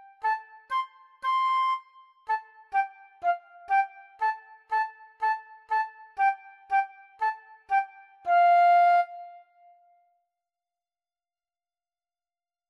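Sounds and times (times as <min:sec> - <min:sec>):
flute melody: 0:00.0 - 0:10.0.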